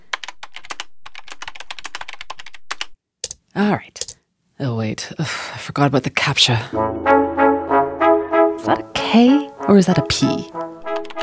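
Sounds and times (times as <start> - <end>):
typing credit card details on a computer keyboard: 0.1 - 3.4
speech: 3.6 - 7.4, 8.6 - 10.8.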